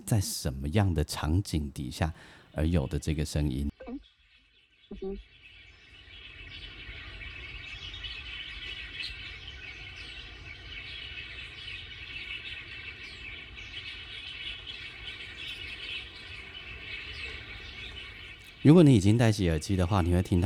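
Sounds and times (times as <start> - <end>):
speech: 0.1 - 4.0, 5.0 - 5.3, 18.6 - 20.4
flock of birds calling in a park: 14.9 - 20.4.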